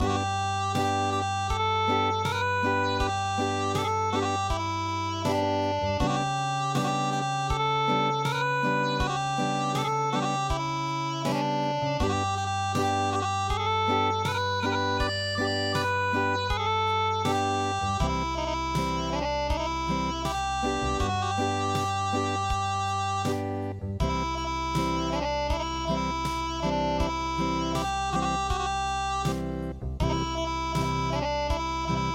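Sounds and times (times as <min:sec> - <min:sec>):
acoustic music: 0:00.0 - 0:32.1.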